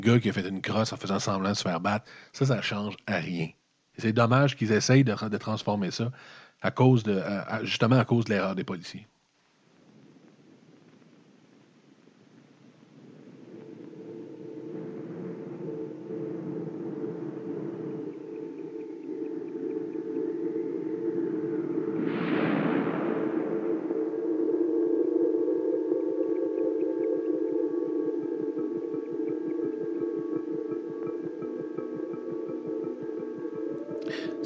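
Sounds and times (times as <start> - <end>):
speech: 0.0 - 9.1
science fiction film trailer soundtrack: 13.7 - 34.4.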